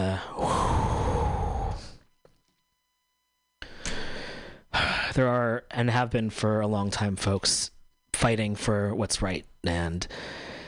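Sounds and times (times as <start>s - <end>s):
deep breath: 0.2s - 2.1s, 3.6s - 5.1s, 10.1s - 10.6s
speech: 5.2s - 10.5s.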